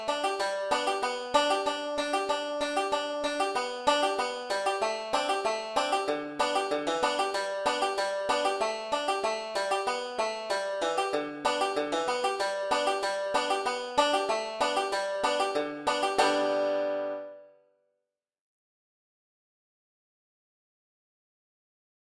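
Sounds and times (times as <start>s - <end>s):
5-string banjo solo in G: 0.0s - 17.5s.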